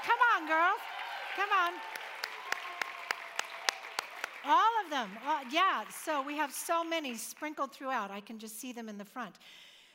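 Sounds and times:
audience rhythmic clapping: 0.0 - 7.5
speech: 0.4 - 2.1, 4.4 - 9.7.

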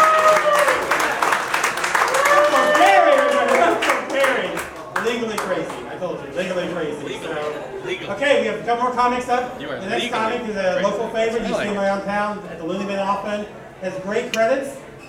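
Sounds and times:
audience clapping: 0.0 - 6.0
speech: 8.1 - 14.8.

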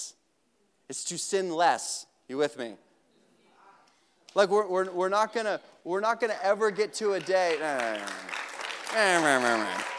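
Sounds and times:
speech: 0.9 - 2.9, 4.4 - 9.9
audience clapping: 6.5 - 9.9.

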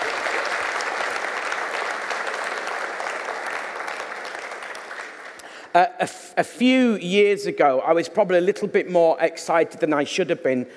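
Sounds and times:
audience applause: 0.0 - 5.4
speech: 5.8 - 10.7.

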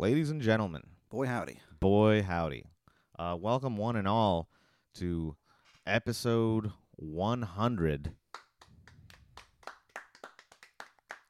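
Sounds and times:
speech: 0.0 - 8.2
tepid round of applause: 8.3 - 11.2.

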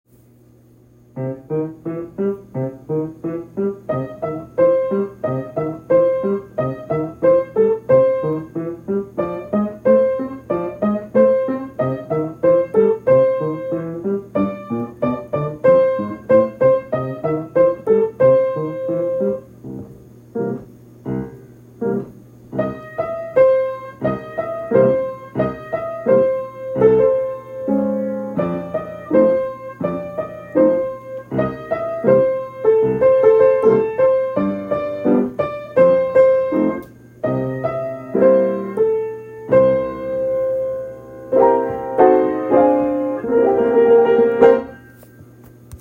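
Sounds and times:
boogie piano: 1.1 - 45.8.

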